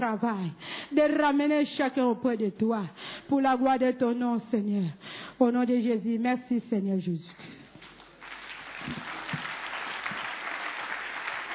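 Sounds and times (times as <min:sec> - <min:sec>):
speech: 0:00.0 - 0:07.6, 0:08.9 - 0:09.2
congregation clapping during a church service: 0:07.8 - 0:11.5.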